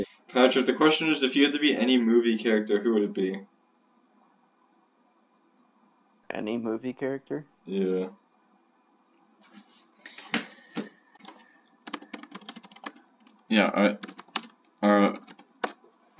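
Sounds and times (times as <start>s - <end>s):
speech: 0.0s - 3.5s, 6.3s - 8.2s, 13.5s - 14.2s, 14.8s - 15.3s
aggressive typing on computer keyboard: 11.2s - 15.8s.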